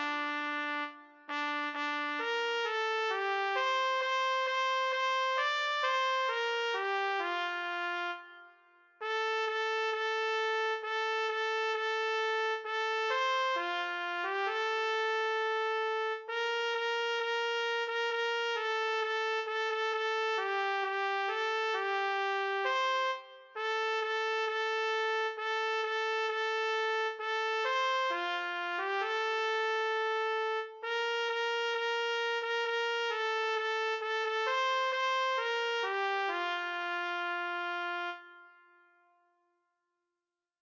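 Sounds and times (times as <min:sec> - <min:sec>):
solo trumpet playing a Christmas song: 0:00.0 - 0:08.4, 0:09.0 - 0:38.5.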